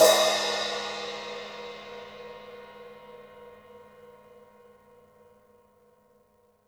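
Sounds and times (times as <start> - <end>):
open hi-hat: 0.0 - 2.6.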